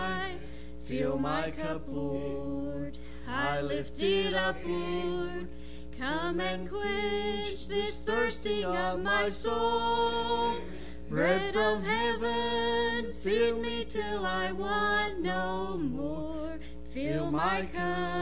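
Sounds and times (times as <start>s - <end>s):
person singing: 0.1s - 18.2s.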